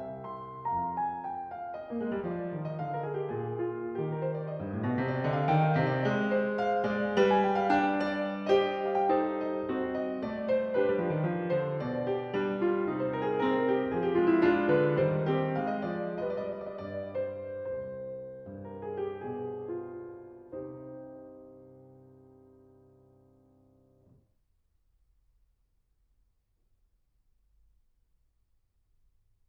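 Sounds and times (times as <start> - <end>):
baroque keyboard piece in C minor: 0.0 - 22.4.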